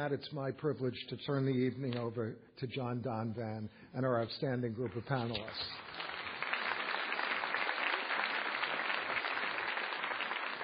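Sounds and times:
speech: 0.0s - 6.1s
audience applause: 5.8s - 10.6s.

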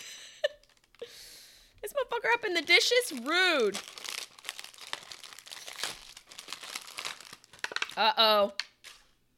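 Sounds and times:
bag of roasted seaweed snacks crinkling: 0.5s - 1.2s, 2.4s - 9.1s
speech: 1.8s - 4.0s, 8.0s - 8.6s.

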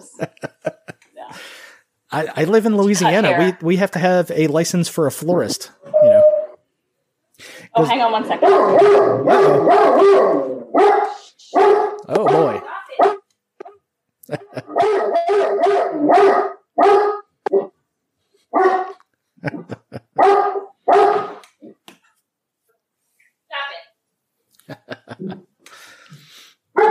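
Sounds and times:
laughter: 0.0s - 1.0s, 14.2s - 14.8s, 19.4s - 20.2s, 24.6s - 25.4s
speech: 0.2s - 0.5s, 2.1s - 6.2s, 7.8s - 11.0s
dog barking and howling at a delivery: 8.4s - 13.2s, 14.6s - 17.7s, 18.5s - 19.0s, 20.2s - 21.4s, 26.8s - 26.9s.

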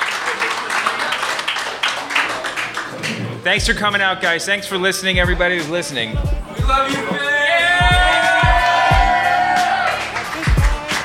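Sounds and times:
crowd applauding: 0.0s - 3.4s, 7.1s - 11.0s
speech: 3.4s - 7.3s.

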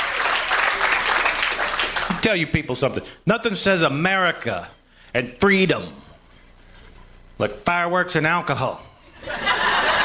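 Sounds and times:
audience applause: 0.0s - 2.2s
speech: 2.2s - 6.1s, 7.4s - 9.5s
laughter: 9.2s - 10.0s.

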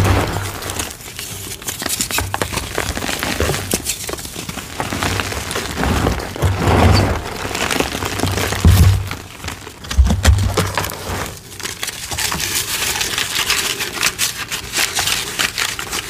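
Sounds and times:
deep thumps: 0.0s - 1.0s, 8.5s - 9.3s
gym chalk slabs crushed in crunchy crackles: 0.0s - 10.0s, 10.7s - 16.0s.

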